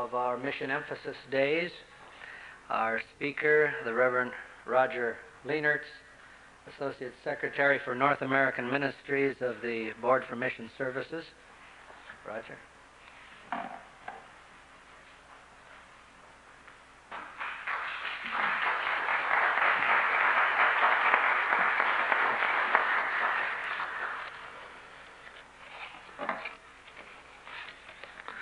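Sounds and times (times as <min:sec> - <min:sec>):
speech: 0:00.0 - 0:02.0, 0:02.7 - 0:06.0, 0:06.6 - 0:11.5, 0:12.2 - 0:12.7, 0:13.5 - 0:13.8
audience applause welcoming a guest speaker at a church mission evening: 0:17.3 - 0:24.6.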